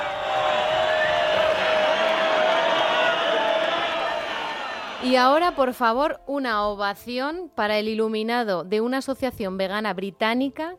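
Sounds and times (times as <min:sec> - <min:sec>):
large bullring crowd booing: 0:00.0 - 0:05.8
speech: 0:05.0 - 0:10.7.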